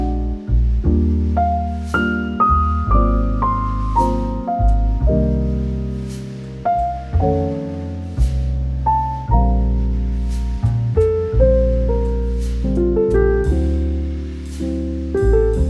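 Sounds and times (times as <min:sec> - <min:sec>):
soothing serene smooth jazz with romantic cafe vibes: 0:00.0 - 0:15.6.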